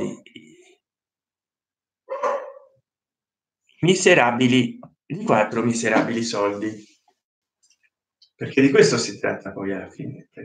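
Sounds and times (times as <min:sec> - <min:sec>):
small dog barking: 0:02.1 - 0:02.7
speech: 0:03.8 - 0:06.9, 0:08.4 - 0:10.4.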